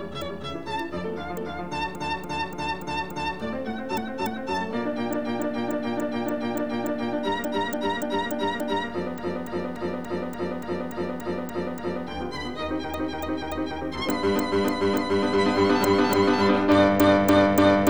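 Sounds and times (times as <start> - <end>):
sonata for piano and violin, scherzo allegro movement: 0.0 - 17.8.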